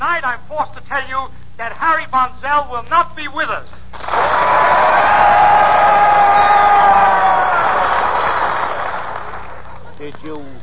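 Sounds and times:
speech: 0.2s - 3.8s
studio audience applause: 4.0s - 10.2s
faint whoops: 4.2s - 8.3s.

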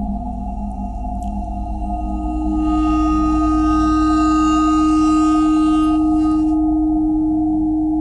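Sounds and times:
bowed ice: 0.2s - 7.8s.

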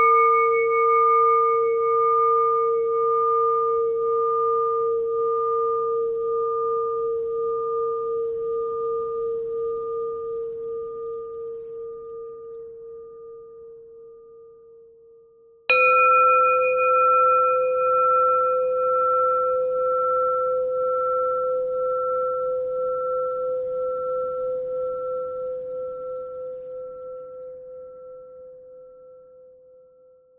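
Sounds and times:
bells: 0.0s - 11.2s, 15.7s - 26.2s.

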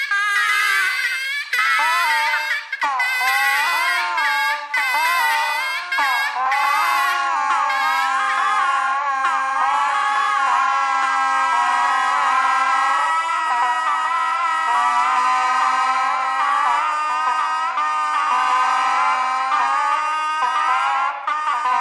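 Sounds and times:
bagpipe on radio: 0.0s - 21.7s.

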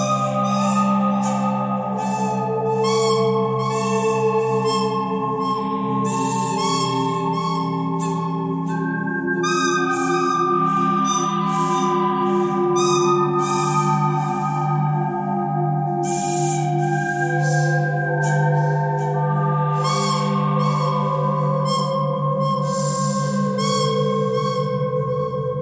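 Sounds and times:
pentatonic bird theme melody: 0.0s - 25.5s.

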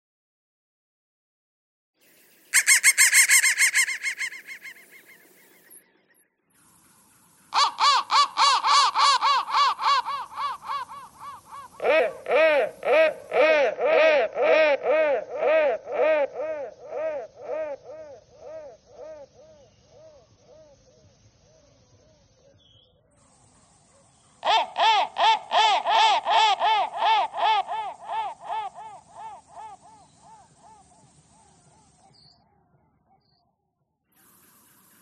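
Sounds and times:
crow calling: 2.5s - 5.6s, 7.5s - 20.7s, 24.4s - 32.0s.

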